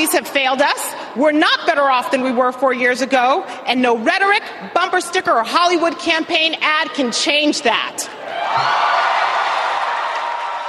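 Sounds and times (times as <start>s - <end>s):
speech: 0.0s - 9.0s
crowd cheering: 8.2s - 10.6s.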